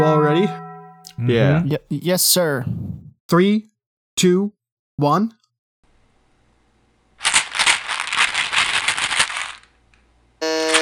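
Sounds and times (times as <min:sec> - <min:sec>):
speech: 0:00.0 - 0:05.4
small plastic box of Tic Tacs being shaken: 0:07.2 - 0:09.8
electronic buzzer tone: 0:10.4 - 0:10.7.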